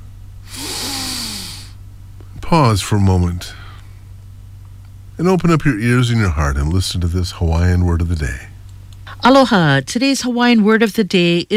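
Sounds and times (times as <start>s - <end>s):
deep breath: 0.5s - 1.8s
speech: 2.5s - 3.6s, 5.2s - 8.5s, 9.2s - 11.5s.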